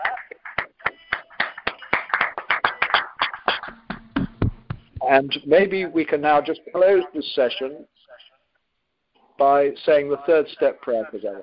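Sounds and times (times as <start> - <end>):
round of applause: 0.0 - 5.1
speech: 5.1 - 8.0, 9.4 - 11.4.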